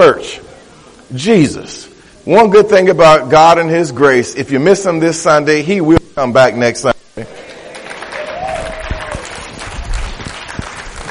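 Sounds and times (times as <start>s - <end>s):
speech: 0.0s - 0.5s, 1.1s - 7.4s
audience clapping: 7.2s - 11.0s.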